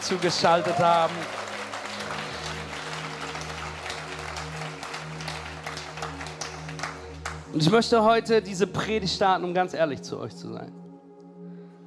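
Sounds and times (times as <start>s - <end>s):
applause: 0.0s - 7.6s
speech: 0.1s - 1.5s, 7.6s - 10.8s.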